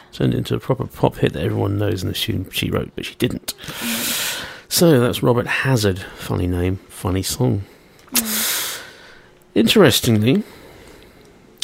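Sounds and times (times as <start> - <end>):
speech: 0.1 - 4.1, 4.7 - 8.4, 9.6 - 10.6
person yawning: 8.1 - 8.6.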